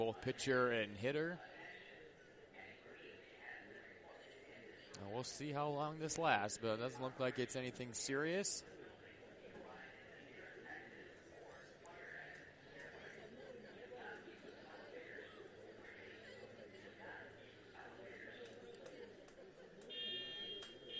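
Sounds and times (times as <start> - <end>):
speech: 0.0 - 1.6, 5.0 - 8.8
alarm sirens sounding at ballpark: 19.8 - 20.9.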